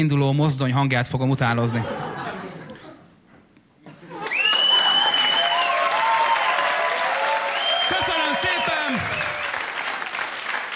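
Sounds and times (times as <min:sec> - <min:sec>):
speech: 0:00.0 - 0:02.0
laughter: 0:01.6 - 0:03.1, 0:03.8 - 0:05.2
audience applause: 0:04.2 - 0:10.7.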